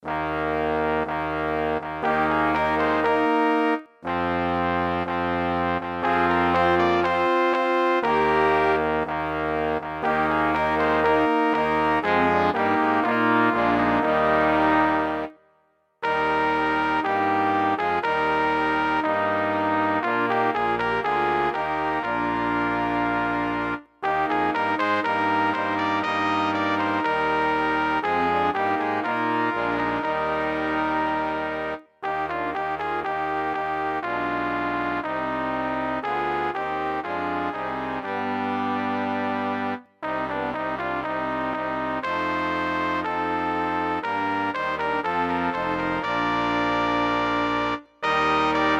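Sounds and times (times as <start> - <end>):
fanfare: 0.0 - 48.7.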